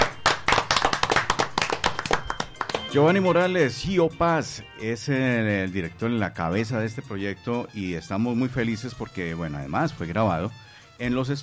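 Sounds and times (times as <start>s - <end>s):
people clapping: 0.0s - 3.3s
speech: 2.9s - 11.4s.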